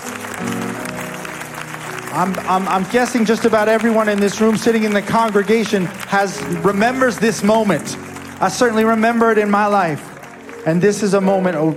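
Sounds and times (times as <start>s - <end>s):
audience applause: 0.0s - 11.7s
speech: 2.2s - 11.7s.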